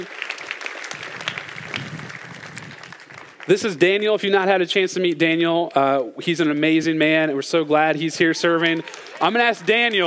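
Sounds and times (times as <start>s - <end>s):
audience applause: 0.0s - 3.7s, 8.2s - 10.0s
speech: 3.5s - 10.0s.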